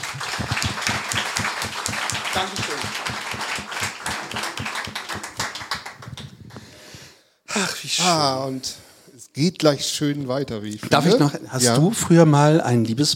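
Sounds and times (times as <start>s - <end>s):
audience applause: 0.0s - 6.5s
speech: 2.4s - 2.9s, 7.8s - 8.8s, 9.4s - 13.1s.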